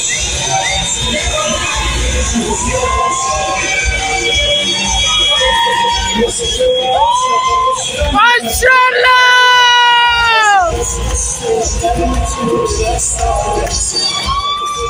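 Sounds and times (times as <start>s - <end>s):
whistles: 0.0s - 8.1s, 11.8s - 14.8s
dense street crowd celebrating and cheering: 0.0s - 14.8s
speech: 2.3s - 3.0s, 11.4s - 14.2s
car horns honking: 3.6s - 6.6s.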